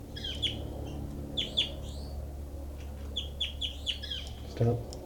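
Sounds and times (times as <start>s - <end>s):
recorded bird calls: 0.1s - 2.1s, 3.1s - 4.5s
speech: 4.6s - 5.0s.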